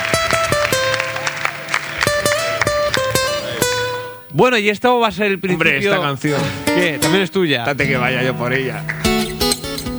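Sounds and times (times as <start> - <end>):
audience applause: 0.0 - 3.9
speech: 4.4 - 9.0.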